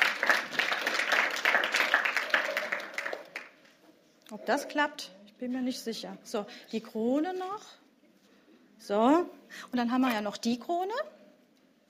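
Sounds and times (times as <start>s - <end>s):
audience applause: 0.0s - 3.6s
speech: 4.5s - 7.8s, 8.8s - 11.2s.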